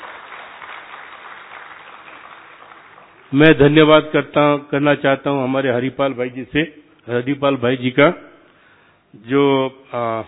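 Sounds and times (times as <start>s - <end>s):
audience applause for a guest speaker at a gathering: 0.0s - 3.3s
speech: 3.3s - 8.3s, 9.1s - 10.2s.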